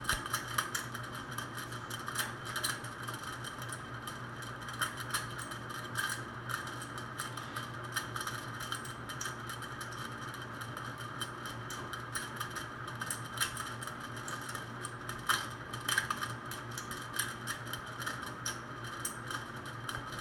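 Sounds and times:
ceiling fan: 0.0s - 20.1s.

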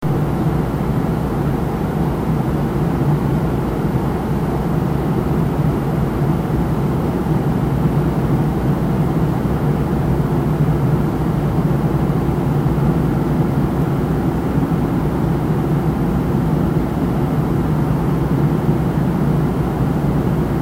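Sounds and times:
plane: 0.0s - 20.6s.

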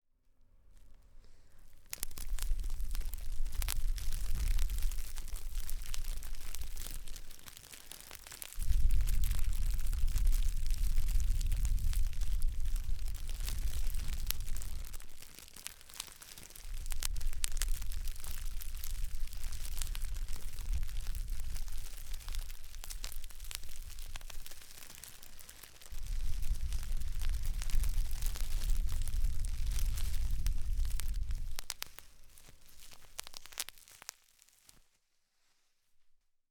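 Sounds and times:
fire crackling: 0.7s - 34.8s.

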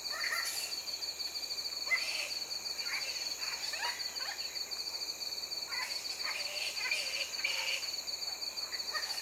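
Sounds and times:
flying fox squabbling calls: 0.0s - 0.8s, 1.8s - 4.6s, 5.6s - 8.0s.

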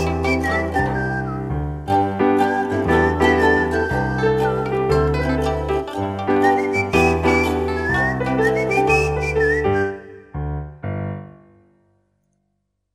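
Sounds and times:
whistling: 0.0s - 5.1s, 6.3s - 10.3s
piano: 0.0s - 12.7s.

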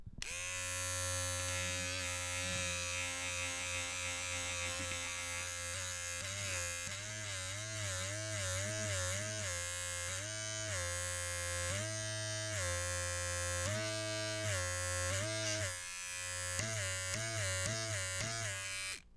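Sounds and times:
electric buzz: 0.2s - 19.0s.

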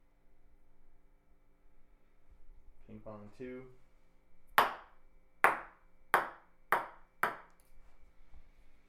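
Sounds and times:
table tennis ball: 4.6s - 7.6s.

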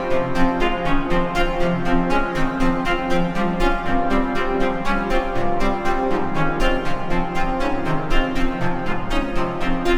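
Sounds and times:
wider longer discordant string loop: 0.0s - 9.9s.

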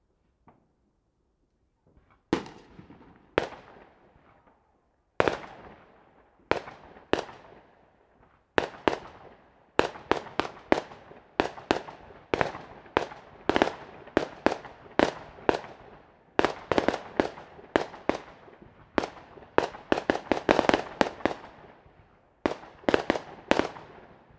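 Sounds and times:
fusillade fireworks: 1.8s - 24.3s.

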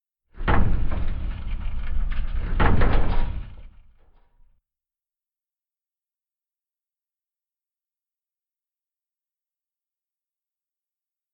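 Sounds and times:
sci-fi metal door opening and closing: 0.4s - 4.3s.

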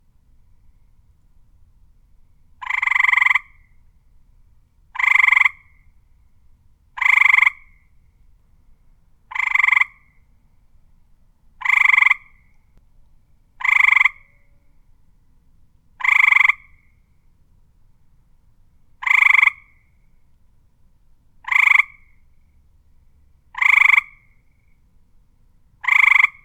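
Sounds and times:
frog croaking: 2.6s - 3.7s, 5.0s - 5.8s, 7.0s - 7.8s, 9.3s - 10.2s, 11.6s - 12.5s, 13.6s - 14.5s, 16.0s - 16.9s, 19.0s - 19.8s, 21.4s - 22.2s, 23.5s - 24.4s, 25.8s - 26.4s.

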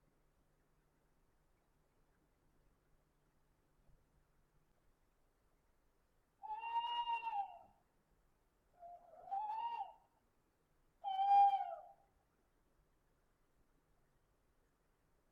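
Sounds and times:
owl hooting: 6.4s - 7.7s, 8.8s - 10.0s, 11.0s - 12.0s.

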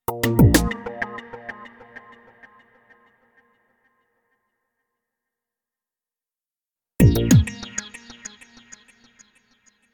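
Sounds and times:
logo beat music: 0.1s - 1.6s, 7.0s - 7.8s.

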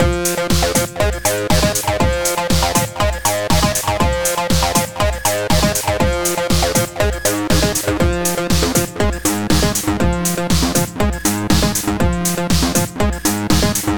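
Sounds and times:
techno loop: 0.0s - 13.9s.

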